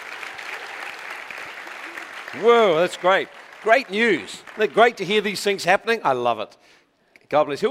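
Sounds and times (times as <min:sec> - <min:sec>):
audience applause: 0:00.0 - 0:05.6
speech: 0:02.3 - 0:07.6.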